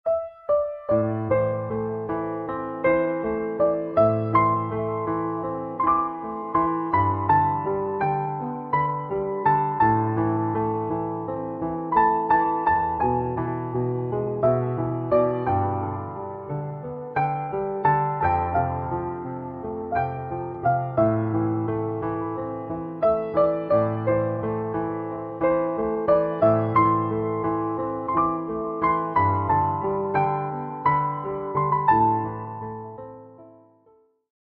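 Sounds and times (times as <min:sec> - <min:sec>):
piano: 0:00.0 - 0:34.3.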